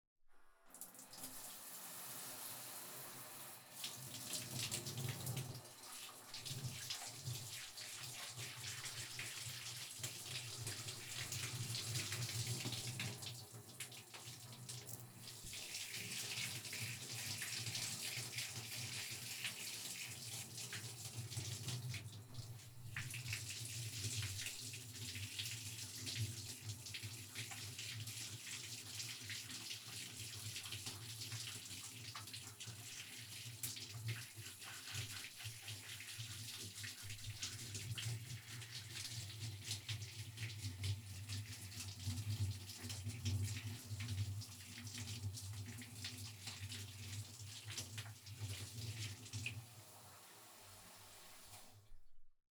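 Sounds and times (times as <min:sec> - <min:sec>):
shower rinsing hair: 0:00.6 - 0:51.8.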